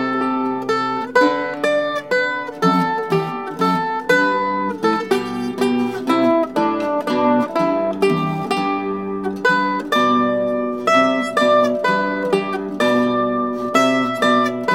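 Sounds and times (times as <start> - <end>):
mandolin: 0.0 - 14.7.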